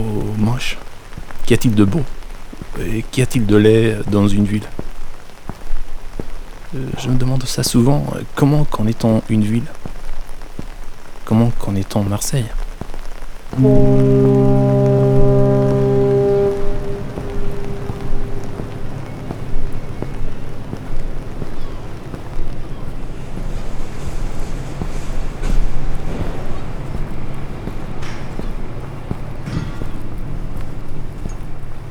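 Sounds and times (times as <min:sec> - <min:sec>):
speech: 0:00.0 - 0:00.9, 0:01.5 - 0:02.2, 0:02.8 - 0:04.8, 0:06.7 - 0:09.8, 0:11.3 - 0:12.6, 0:13.6 - 0:14.8
sea and harbour water wash in Marseille: 0:00.0 - 0:31.9
low horn-like chord of sustained tones: 0:13.6 - 0:31.9.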